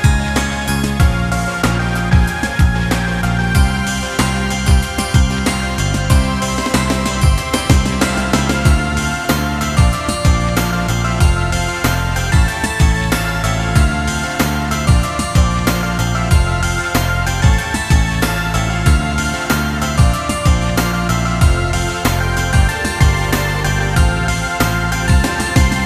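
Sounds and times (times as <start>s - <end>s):
instrumental background music: 0.0s - 25.8s.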